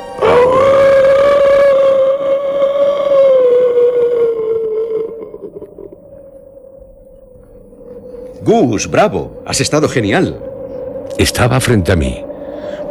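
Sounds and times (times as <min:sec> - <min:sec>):
person howling like a wolf: 0:00.0 - 0:06.0
speech: 0:08.5 - 0:10.5, 0:11.2 - 0:12.3.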